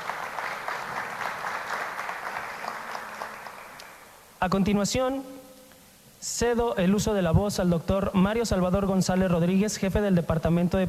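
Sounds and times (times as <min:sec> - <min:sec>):
audience applause: 0:00.0 - 0:04.2
speech: 0:04.4 - 0:05.4, 0:06.2 - 0:10.8.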